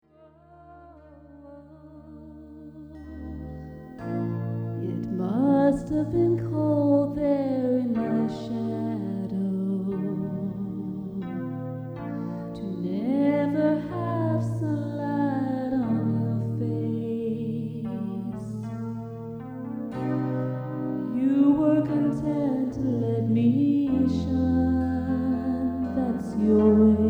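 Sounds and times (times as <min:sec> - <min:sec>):
ballad: 0:00.5 - 0:27.0.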